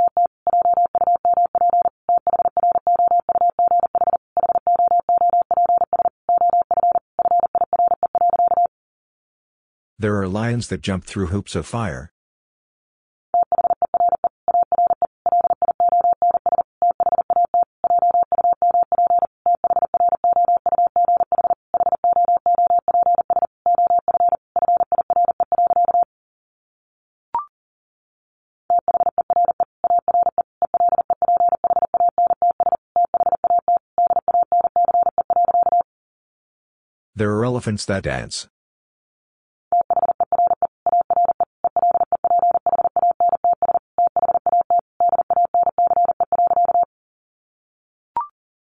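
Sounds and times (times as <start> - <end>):
Morse code tones at 40 words per minute: 0.0 - 8.7, 13.4 - 26.1, 28.7 - 35.8, 39.8 - 46.9
speech: 10.0 - 12.1, 37.6 - 38.5.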